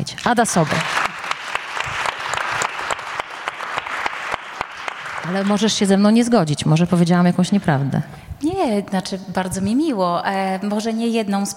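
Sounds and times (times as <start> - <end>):
speech: 0.2 - 1.0, 5.3 - 11.5
audience applause: 0.5 - 5.9.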